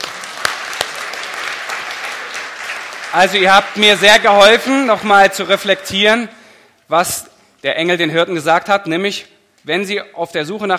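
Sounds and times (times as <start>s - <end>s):
audience applause: 0.0s - 5.0s
speech: 3.1s - 10.7s.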